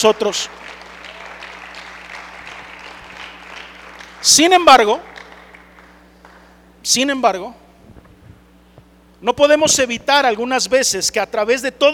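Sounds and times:
speech: 0:00.0 - 0:00.8, 0:04.2 - 0:05.1, 0:06.8 - 0:07.6, 0:09.2 - 0:11.9
audience applauding: 0:00.0 - 0:06.6.

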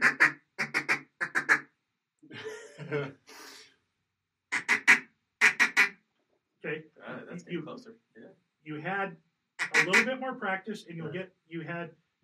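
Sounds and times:
duck call blown with cupped hands practising the gaga note: 0:00.0 - 0:01.6, 0:04.5 - 0:05.9, 0:09.6 - 0:10.2
laughter: 0:02.3 - 0:03.6, 0:07.0 - 0:07.8, 0:08.7 - 0:09.1, 0:09.8 - 0:12.2
speech: 0:02.9 - 0:03.2, 0:06.8 - 0:12.2.

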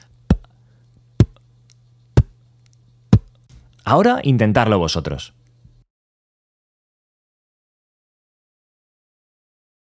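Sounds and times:
faint steady hum: 0:00.0 - 0:05.8
beatboxed bass drum made with lips: 0:01.2 - 0:01.4
speech: 0:03.9 - 0:05.4.

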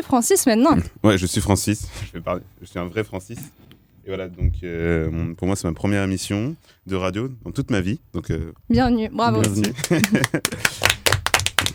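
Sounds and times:
speech: 0:00.0 - 0:10.9
hand clapping: 0:09.4 - 0:11.7
laughter: 0:09.6 - 0:10.9.

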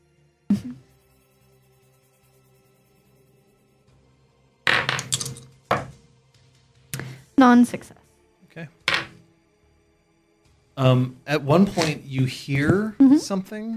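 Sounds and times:
speech: 0:00.6 - 0:00.9, 0:07.4 - 0:08.8, 0:10.8 - 0:13.7
dice rolling: 0:04.7 - 0:05.9, 0:08.9 - 0:09.1.

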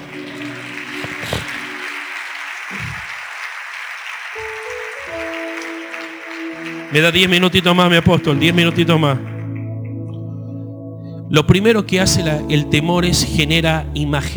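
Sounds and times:
audience applause: 0:00.0 - 0:09.5
speech: 0:06.9 - 0:09.3, 0:11.3 - 0:14.3.

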